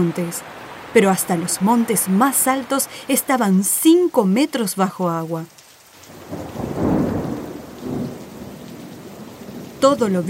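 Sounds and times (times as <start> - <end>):
speech: 0.0 - 5.6, 9.8 - 10.2
heavy rain: 0.0 - 10.2
thunder rumbling: 6.1 - 10.2.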